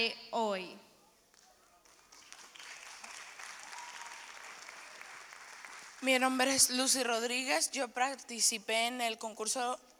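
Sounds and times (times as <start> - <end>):
speech: 0.0 - 0.9, 6.0 - 9.9
audience clapping: 1.8 - 6.2.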